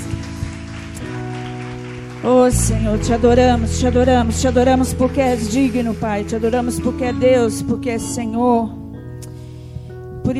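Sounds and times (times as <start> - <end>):
audience applauding: 0.0 - 6.2
sustained low keyboard chords: 0.0 - 9.4
speech: 2.2 - 8.8.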